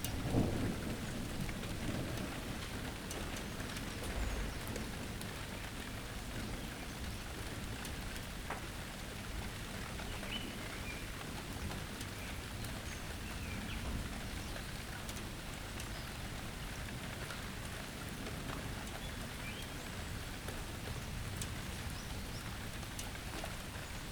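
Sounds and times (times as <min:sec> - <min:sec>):
thunder: 0:00.0 - 0:03.3
rain: 0:00.0 - 0:24.1.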